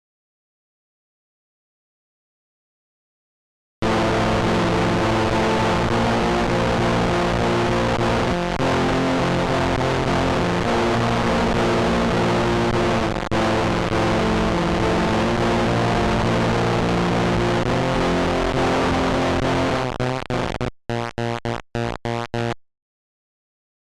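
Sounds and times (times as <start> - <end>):
distorted sound: 3.8 - 22.6.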